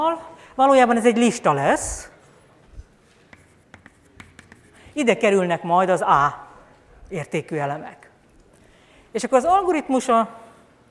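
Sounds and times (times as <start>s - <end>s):
speech: 0.0s - 2.1s, 5.0s - 6.4s, 7.1s - 8.0s, 9.2s - 10.4s
pen writing strokes during a lecture on an algorithm: 3.3s - 4.8s.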